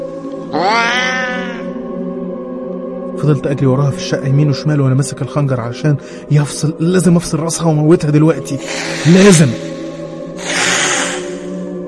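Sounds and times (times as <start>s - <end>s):
speech: 0.5s - 0.8s, 3.2s - 9.7s
cat yowling menacingly: 0.5s - 1.8s.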